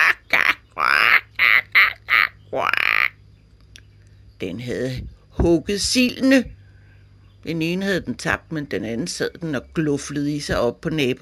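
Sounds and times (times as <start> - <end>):
hooded crow cawing on a roof: 0.0 - 3.2
speech: 2.5 - 2.9, 4.4 - 6.6, 7.4 - 11.2.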